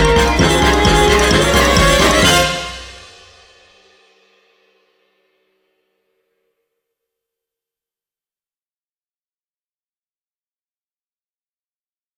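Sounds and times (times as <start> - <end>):
symphony orchestra: 0.0 - 3.2.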